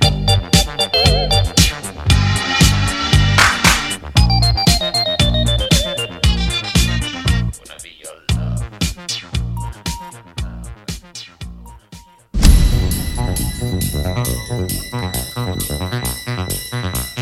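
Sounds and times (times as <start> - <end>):
transistor bass: 0.0 - 7.6, 8.3 - 8.8, 9.4 - 9.8, 12.4 - 16.8.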